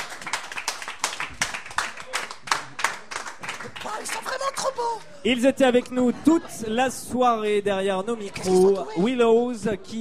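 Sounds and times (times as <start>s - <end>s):
audience at the Bodega clapping for a band: 0.0s - 5.0s
speech: 4.0s - 9.9s.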